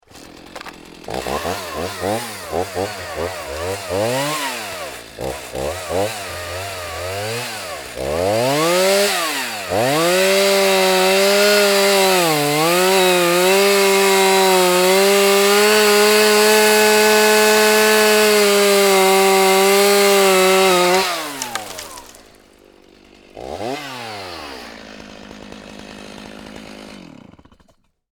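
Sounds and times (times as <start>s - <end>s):
chainsaw cutting a small tree: 0.0s - 28.0s
small tree falling: 0.1s - 22.4s.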